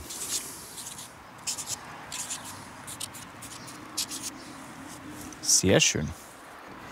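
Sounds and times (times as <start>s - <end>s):
writing scratching on the back of a stove tile: 0.0s - 4.4s
speech: 5.6s - 6.2s.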